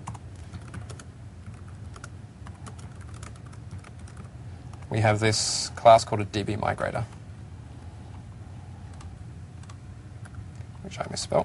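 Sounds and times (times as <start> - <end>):
code being typed on a computer keyboard: 0.0 - 4.9
speech: 4.9 - 7.2, 11.1 - 11.4.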